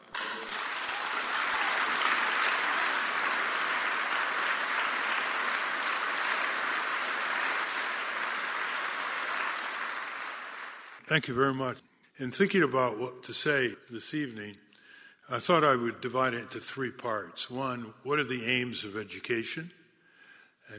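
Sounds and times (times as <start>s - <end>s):
audience applause: 0.0s - 11.0s
speech: 11.1s - 14.6s, 15.2s - 19.8s.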